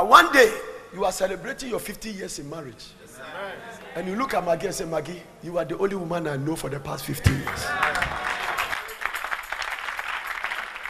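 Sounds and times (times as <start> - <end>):
speech: 0.1 - 7.8
audience clapping: 7.3 - 10.8.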